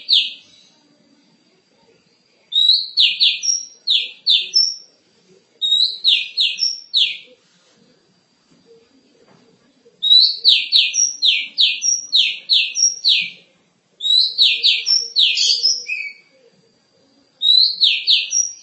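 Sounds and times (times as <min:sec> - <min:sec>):
Oriental magpie-robin singing: 0:00.0 - 0:00.6, 0:02.5 - 0:04.9, 0:05.6 - 0:07.3, 0:10.0 - 0:16.3, 0:17.4 - 0:18.6.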